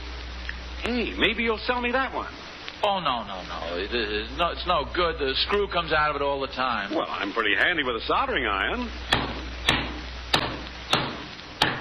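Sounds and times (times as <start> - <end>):
low hiss: 0.0 - 11.7
speech: 0.8 - 9.2
hammer driving a nail: 9.1 - 11.7.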